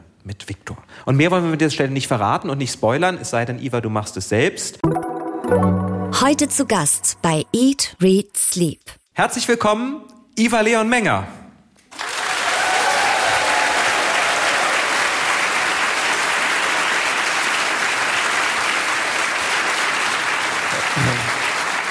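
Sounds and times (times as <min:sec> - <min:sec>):
speech: 0:00.2 - 0:11.4
audience applause: 0:11.9 - 0:21.8.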